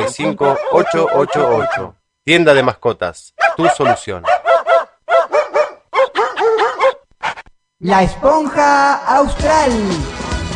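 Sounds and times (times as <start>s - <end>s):
dog barking: 0.0s - 2.0s, 3.4s - 7.0s
speech: 0.1s - 4.4s, 7.8s - 10.2s.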